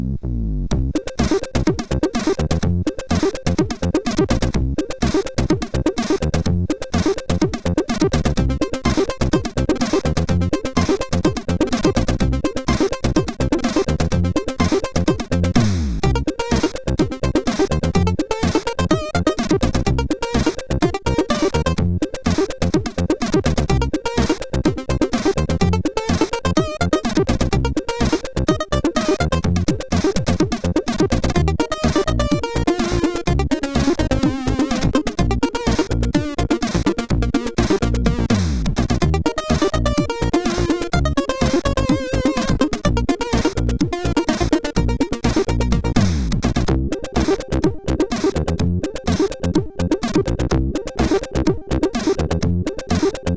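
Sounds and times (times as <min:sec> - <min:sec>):
big funk chiptune on MOS6581R4 sound chip: 0:00.2 - 0:53.3.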